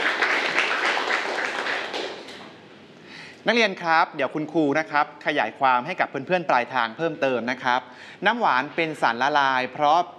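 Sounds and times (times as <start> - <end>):
group of students applauding: 0.0 - 2.4
speech: 3.4 - 10.1.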